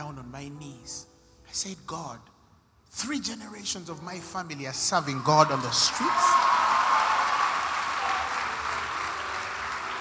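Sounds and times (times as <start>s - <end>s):
speech: 0.1s - 2.3s, 2.9s - 6.6s
audience clapping: 5.0s - 9.9s.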